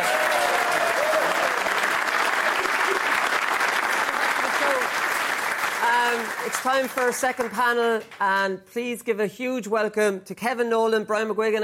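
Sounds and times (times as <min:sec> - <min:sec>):
large crowd applauding a panel of guests at a live event: 0:00.0 - 0:07.6
speech: 0:06.4 - 0:11.6.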